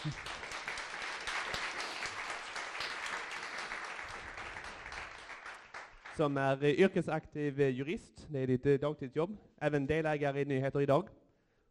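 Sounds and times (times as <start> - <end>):
speech: 0.0 - 0.3, 6.2 - 11.2
crowd applause: 0.0 - 6.2.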